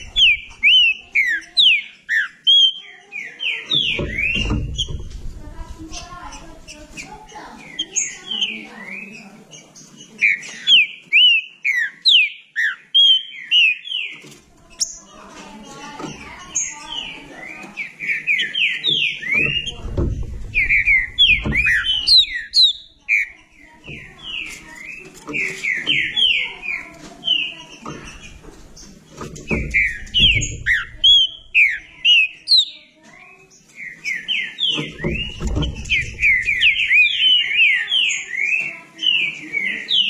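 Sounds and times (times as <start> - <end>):
green-winged saltator chattering notes: 0.0 - 32.9, 33.5 - 40.0
low thumping: 3.9 - 7.3, 19.4 - 27.1, 27.8 - 32.0, 34.8 - 37.5.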